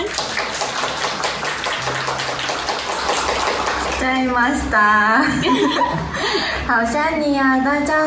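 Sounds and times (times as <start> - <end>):
enthusiastic applause: 0.0 - 4.7
speech: 4.1 - 8.0
laughter: 5.2 - 6.6.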